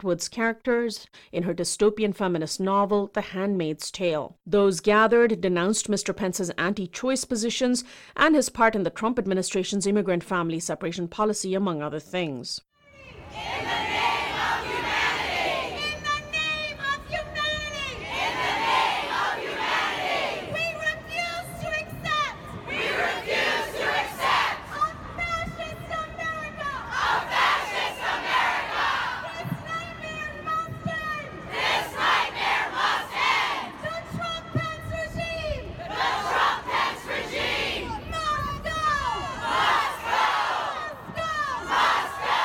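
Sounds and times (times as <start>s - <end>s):
speech: 0.0s - 14.0s
sustained protest crowd noise: 12.9s - 42.4s
mass protest crowd chanting at Mike Pence in Philadelphia: 13.1s - 16.0s, 18.0s - 20.7s, 22.2s - 24.8s, 26.7s - 29.5s, 31.4s - 33.8s, 35.8s - 38.0s, 39.3s - 40.9s, 41.6s - 42.4s.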